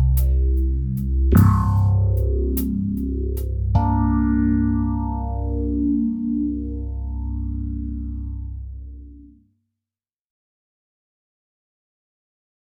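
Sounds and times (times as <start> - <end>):
bass: 0.0 - 9.4.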